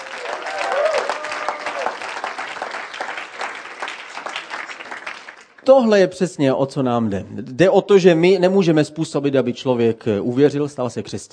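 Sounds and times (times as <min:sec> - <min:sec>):
audience applause: 0:00.0 - 0:05.6
speech: 0:05.7 - 0:11.3.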